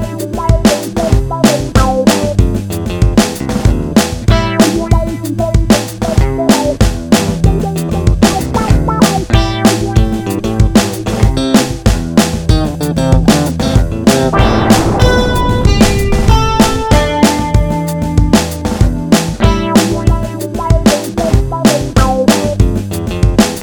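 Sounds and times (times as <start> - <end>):
funky music: 0.0 - 23.6.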